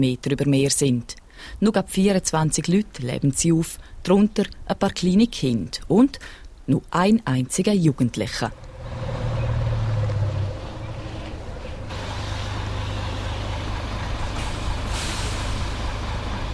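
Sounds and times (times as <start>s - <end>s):
speech: 0.0s - 9.2s
large postal bus engine droning: 8.5s - 16.5s
bus air brakes hissing: 10.7s - 16.5s.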